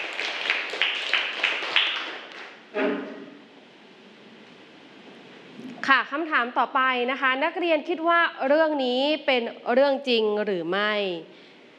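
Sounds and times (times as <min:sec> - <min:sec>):
classroom students clapping: 0:00.0 - 0:02.6
speech: 0:05.9 - 0:11.4.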